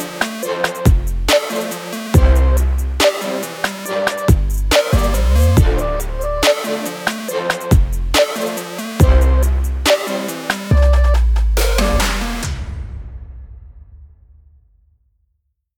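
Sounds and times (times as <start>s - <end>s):
teenage future bass music: 0.0s - 12.5s.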